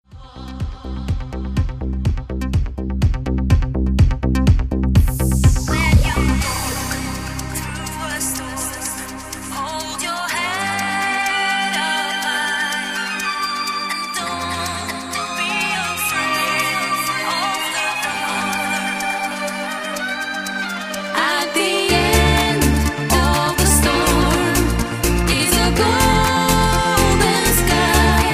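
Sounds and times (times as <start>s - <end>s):
trance music: 0.2s - 28.3s.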